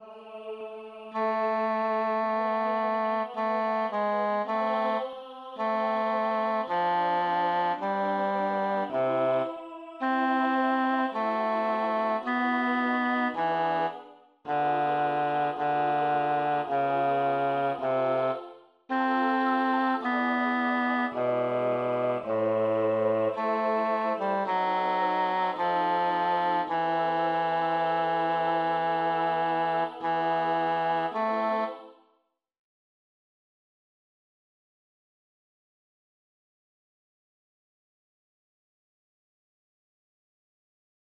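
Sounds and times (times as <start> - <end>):
midi sacred music: 0.0 - 31.8.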